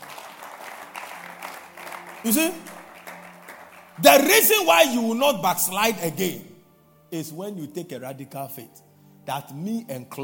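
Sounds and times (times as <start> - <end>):
audience clapping: 0.0 - 5.1
speech: 2.2 - 2.8, 4.0 - 6.5, 7.1 - 10.2.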